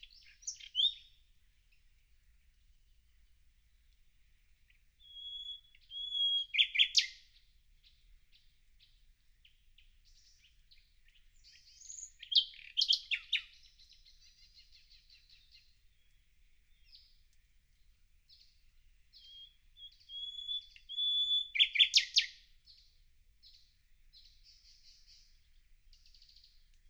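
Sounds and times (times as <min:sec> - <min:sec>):
common nightingale singing: 0:00.0 - 0:01.2, 0:04.6 - 0:17.3, 0:18.3 - 0:26.8.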